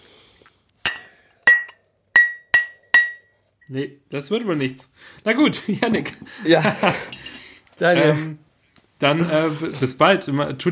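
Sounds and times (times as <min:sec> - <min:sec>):
cup clinking against a glass: 0:00.9 - 0:03.3
speech: 0:03.7 - 0:07.2, 0:07.8 - 0:08.4, 0:09.0 - 0:10.7
laughter: 0:05.8 - 0:07.1.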